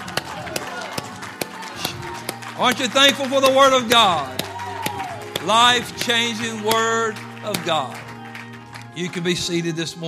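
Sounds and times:
audience shouting: 0.0s - 5.9s
audience clapping hands: 0.0s - 10.0s
speech: 2.6s - 4.4s, 5.4s - 8.0s, 9.0s - 10.0s.

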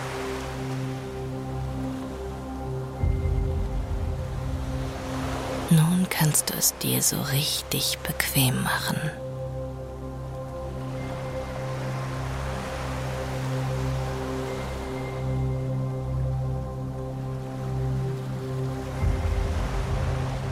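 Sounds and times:
low musical drone: 0.0s - 20.5s
rocking ocean waves: 0.0s - 20.5s
speech: 5.7s - 9.2s.

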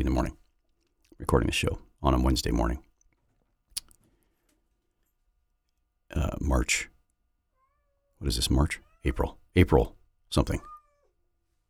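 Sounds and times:
speech: 0.0s - 0.4s, 1.2s - 2.9s, 6.4s - 6.9s, 8.2s - 10.7s
cat meowing: 7.6s - 8.2s, 8.8s - 9.3s, 10.5s - 11.2s.

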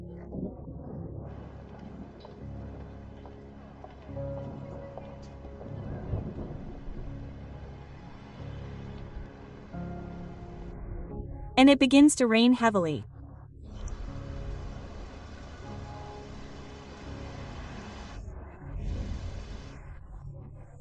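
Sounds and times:
thunder: 5.6s - 7.8s, 13.9s - 20.0s
speech: 11.6s - 13.1s.

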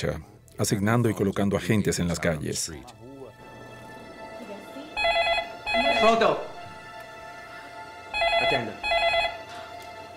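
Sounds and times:
speech: 0.0s - 3.1s, 6.0s - 6.5s
telephone ringing with warbling electronic tone: 5.0s - 6.2s, 8.1s - 9.5s.

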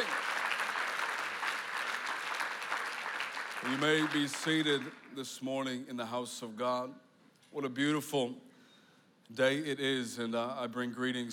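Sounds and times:
audience clapping hands: 0.0s - 5.2s
speech: 3.6s - 8.5s, 9.3s - 11.3s.

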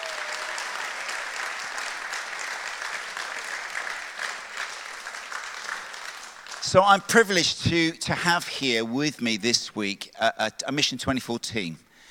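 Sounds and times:
audience applause: 0.0s - 6.8s
speech: 6.7s - 11.8s.

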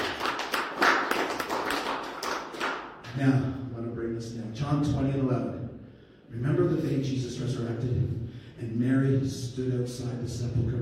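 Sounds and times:
church congregation clapping along during a sermon: 0.0s - 3.4s
speech: 3.2s - 3.6s, 4.6s - 5.6s, 6.3s - 10.7s.

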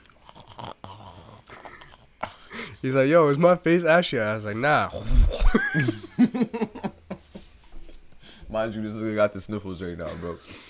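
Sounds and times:
person chewing food: 0.0s - 2.8s
speech: 2.8s - 6.0s, 8.6s - 10.6s
laughter: 5.2s - 7.5s.

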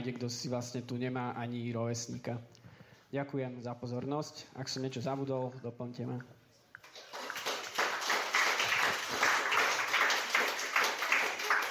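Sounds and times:
speech: 0.0s - 6.4s
audience clapping after a speaker at a campaign meeting: 6.8s - 11.7s.

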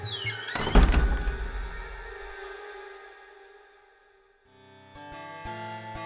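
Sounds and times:
melodic tune of plucked bell-like notes: 0.2s - 2.4s
door flying open: 0.5s - 2.3s.

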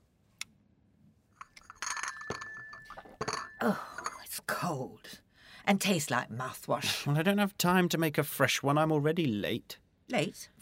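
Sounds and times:
clattering handling of a coffee cup: 1.3s - 4.2s
coffee cup clinking: 1.4s - 4.3s
speech: 3.6s - 3.9s, 4.5s - 10.6s.

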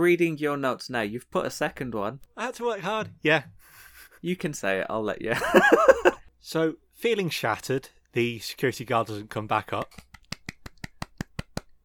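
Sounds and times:
speech: 0.0s - 10.1s
laughter: 5.3s - 6.2s
hand clapping: 9.7s - 11.8s.

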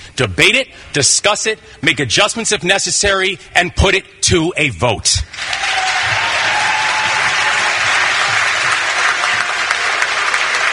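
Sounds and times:
speech: 0.2s - 5.5s
large crowd cheering, booing, clapping and shouting: 5.3s - 10.7s.

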